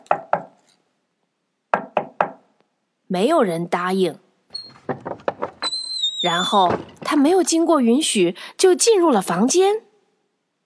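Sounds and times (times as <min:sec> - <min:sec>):
knocking on a wooden door: 0:01.7 - 0:02.4, 0:04.7 - 0:05.7
speech: 0:03.1 - 0:04.2, 0:06.2 - 0:09.9.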